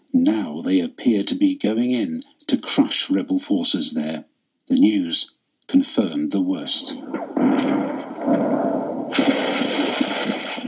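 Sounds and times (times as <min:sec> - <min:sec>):
speech: 0:00.1 - 0:08.5
bombs falling and exploding during the siege of eastern Aleppo: 0:07.0 - 0:10.6.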